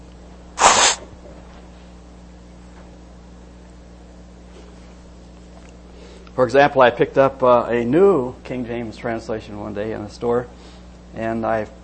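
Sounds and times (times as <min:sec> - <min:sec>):
loud nose blow: 0:00.6 - 0:01.1
speech: 0:06.4 - 0:11.8.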